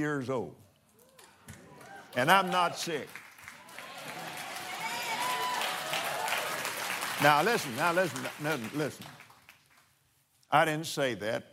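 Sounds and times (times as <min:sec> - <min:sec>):
speech: 0:00.0 - 0:00.7, 0:02.1 - 0:03.2, 0:07.2 - 0:09.2, 0:10.5 - 0:11.5
crowd clapping: 0:01.2 - 0:09.9.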